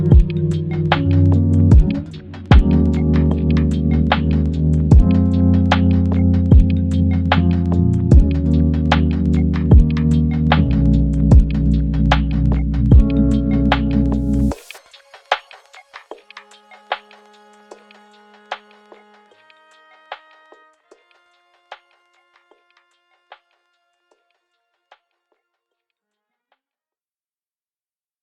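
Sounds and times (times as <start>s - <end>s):
lofi music: 0.0s - 21.9s.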